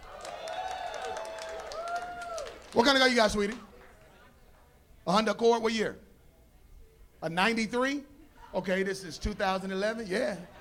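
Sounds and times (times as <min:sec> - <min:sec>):
crowd cheering and hollering: 0:00.0 - 0:02.8
scattered clapping: 0:00.0 - 0:04.1
speech: 0:02.7 - 0:03.6, 0:05.0 - 0:06.0, 0:07.2 - 0:10.6.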